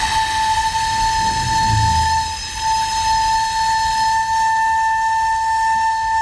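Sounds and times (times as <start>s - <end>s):
600-year-old recorder playing a long high note: 0.0s - 6.2s
low rumble: 0.6s - 3.0s.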